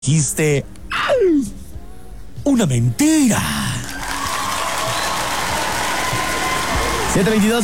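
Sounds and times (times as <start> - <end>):
speech: 0.0 - 1.6, 2.4 - 3.7, 7.1 - 7.6
audience applause: 3.8 - 7.6.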